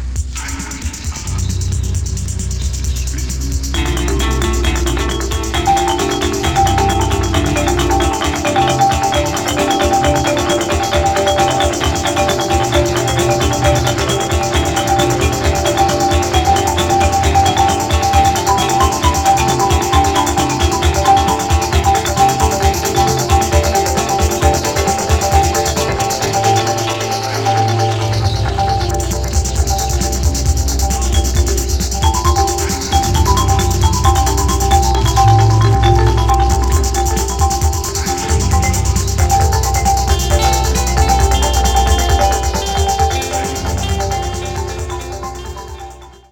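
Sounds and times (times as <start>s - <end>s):
dry marimba: 0.2s - 46.3s.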